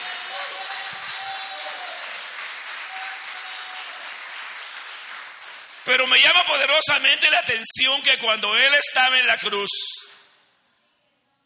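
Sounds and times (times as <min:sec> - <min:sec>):
audience applause: 0:00.0 - 0:06.8
speech: 0:05.8 - 0:10.0.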